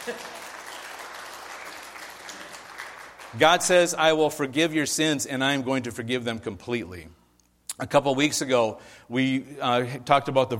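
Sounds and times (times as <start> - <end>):
audience clapping: 0.0 - 3.9
speech: 0.1 - 0.3, 3.3 - 7.2, 7.8 - 10.5.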